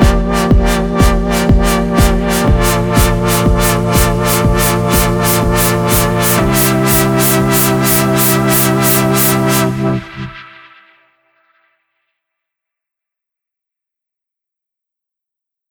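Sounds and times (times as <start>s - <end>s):
arpeggios: 0.0s - 10.5s.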